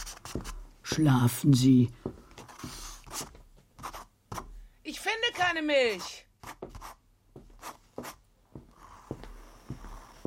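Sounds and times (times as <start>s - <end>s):
pencil scratching on paper at night: 0.0s - 0.6s, 2.4s - 4.5s, 5.2s - 7.0s, 7.6s - 8.2s
speech: 0.4s - 2.2s, 5.5s - 6.2s.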